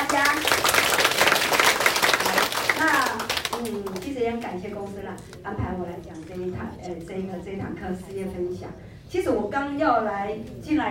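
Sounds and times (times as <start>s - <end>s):
audience applause: 0.0s - 3.7s
speech: 4.3s - 10.8s.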